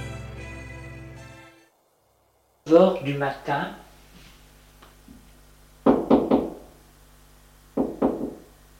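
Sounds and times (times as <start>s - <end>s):
speech: 2.7s - 3.9s
knocking on a door: 5.9s - 6.7s, 7.8s - 8.5s.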